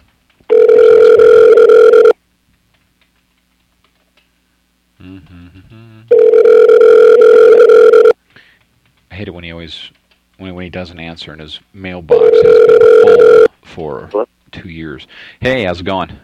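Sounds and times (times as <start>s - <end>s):
phone ringback tone: 0.5s - 2.2s, 6.1s - 8.2s, 12.1s - 13.5s
speech: 9.5s - 16.2s.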